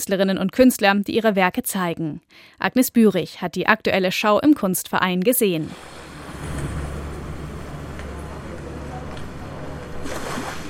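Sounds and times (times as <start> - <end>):
speech: 0.0 - 6.0
low steady rumble: 5.6 - 10.4
seawater sloshing and foaming against the shore: 5.6 - 10.6.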